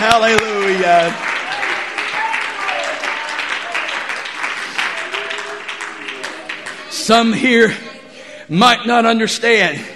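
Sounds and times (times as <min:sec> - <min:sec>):
audience clapping hands: 0:00.0 - 0:07.4
speech: 0:00.1 - 0:01.3, 0:07.1 - 0:07.9, 0:08.5 - 0:09.9.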